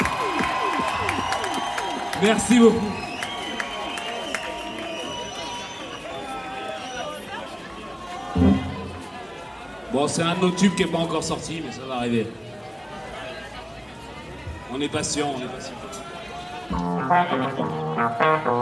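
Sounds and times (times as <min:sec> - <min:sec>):
shrill whistles: 0:00.0 - 0:07.2
crowd cheering and clapping: 0:00.0 - 0:09.9
speech: 0:02.2 - 0:03.0, 0:10.0 - 0:12.4, 0:14.7 - 0:16.1, 0:16.7 - 0:18.5.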